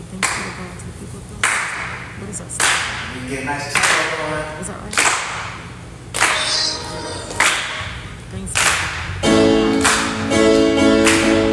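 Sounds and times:
speech: 2.4 - 5.2
audience clapping a steady beat: 2.6 - 4.3, 4.9 - 11.5.

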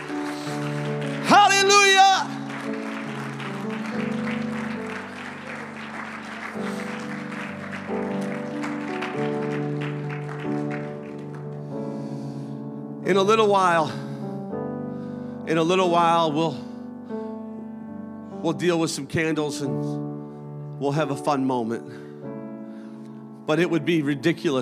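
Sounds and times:
audience clapping: 0.0 - 12.2
speech: 13.1 - 14.0, 15.5 - 16.6, 18.4 - 20.1, 20.8 - 21.8, 23.5 - 24.6.

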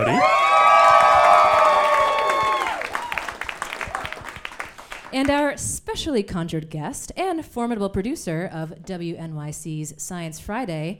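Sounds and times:
audience applause: 0.0 - 5.2
speech: 5.2 - 10.9.

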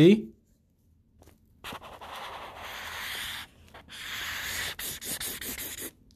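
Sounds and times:
speech: 0.0 - 0.3
marker scribbling on paper to cross out a dot: 1.6 - 6.0.

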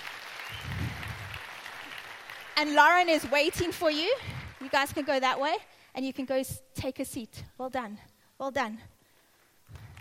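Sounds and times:
audience applause: 0.0 - 5.2, 9.7 - 9.9
speech: 2.6 - 8.9.

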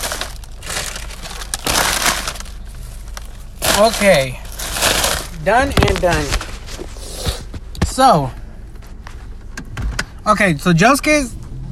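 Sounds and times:
trash crumpling while being bundled up: 0.0 - 8.1
speech: 3.8 - 4.4, 5.4 - 6.4, 8.0 - 8.4, 10.3 - 11.4.

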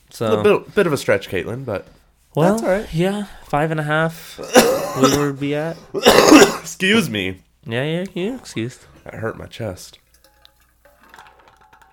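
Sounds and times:
speech: 0.2 - 10.0
ice cold water: 8.4 - 11.9.

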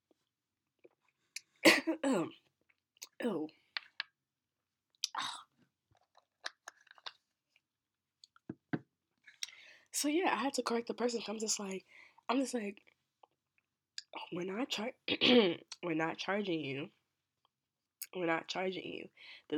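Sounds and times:
cough-like burst: 1.7 - 2.2
speech: 1.9 - 2.4, 10.0 - 12.9, 14.3 - 17.0, 18.1 - 19.5
mouth clicks: 3.8 - 4.1, 5.0 - 5.4
person gulping and swallowing cough medicine: 6.0 - 7.1.

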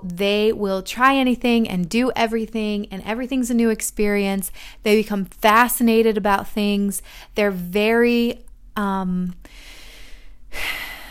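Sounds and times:
speech: 0.0 - 9.7
deep breath taken by a speaker: 9.4 - 11.1.

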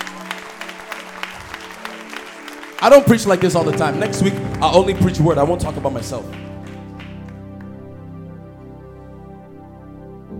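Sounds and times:
audience applauding: 0.0 - 8.0
speech: 2.8 - 6.6.

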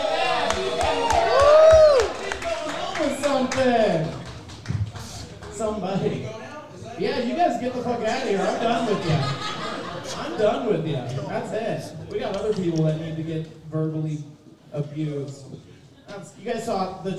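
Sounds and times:
audience round of applause: 0.1 - 5.5
speech: 7.5 - 9.4, 10.2 - 17.1
laughter: 8.0 - 11.2.

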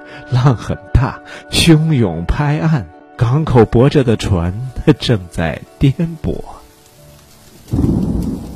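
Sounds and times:
speech: 0.2 - 6.6
heavy rain: 5.8 - 8.5
thunder: 7.7 - 8.5.

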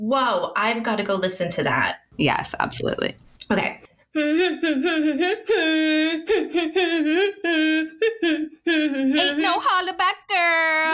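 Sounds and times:
speech: 0.0 - 10.9
person humming a catchy pop melody: 4.1 - 9.6.

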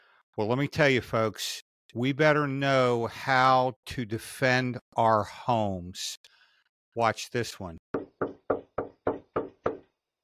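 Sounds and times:
speech: 0.4 - 6.3, 7.0 - 7.9
knocking on a door: 8.0 - 9.9.

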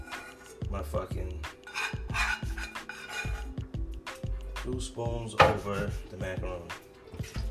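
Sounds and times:
beans and garlic stirred in a metal pan: 0.0 - 0.7, 1.5 - 3.6
speech: 0.7 - 1.6, 4.7 - 7.4.

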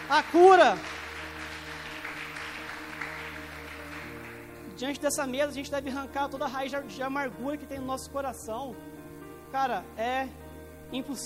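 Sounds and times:
audience applauding: 0.0 - 4.6
speech: 0.1 - 0.9, 4.8 - 8.9, 9.5 - 11.2.

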